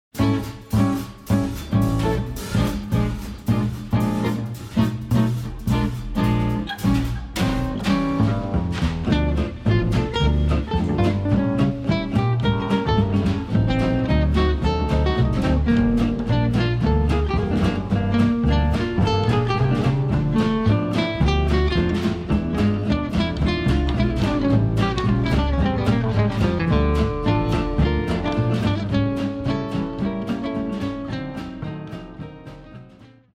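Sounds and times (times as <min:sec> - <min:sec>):
swing music: 0:00.1 - 0:33.3.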